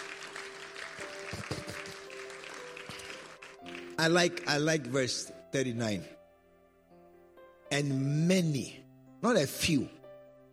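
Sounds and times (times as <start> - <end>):
audience clapping: 0.0 - 4.4
speech: 4.0 - 6.2, 7.7 - 10.0.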